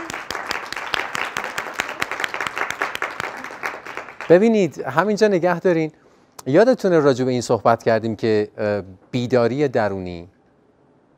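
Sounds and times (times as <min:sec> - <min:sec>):
small class audience clapping for the participants: 0:00.0 - 0:04.8
speech: 0:04.3 - 0:10.4.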